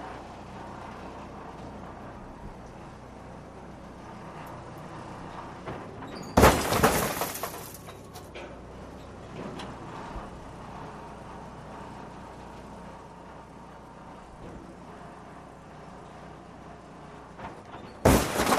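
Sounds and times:
car crashes at an auto wrecker: 0:06.1 - 0:08.1, 0:17.8 - 0:18.5.

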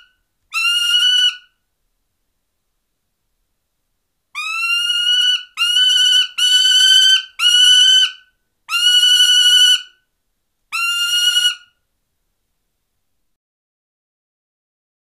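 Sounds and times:
prairie falcon calls: 0:00.0 - 0:01.6, 0:04.4 - 0:10.0, 0:10.7 - 0:11.8.

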